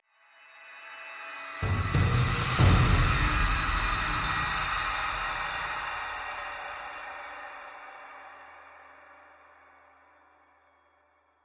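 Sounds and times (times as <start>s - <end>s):
drum: 1.6s - 6.3s.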